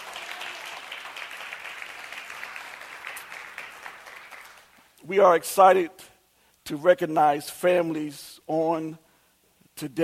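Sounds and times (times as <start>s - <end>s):
audience clapping hands: 0.0s - 5.0s
speech: 5.0s - 6.1s, 6.7s - 9.0s, 9.8s - 10.0s.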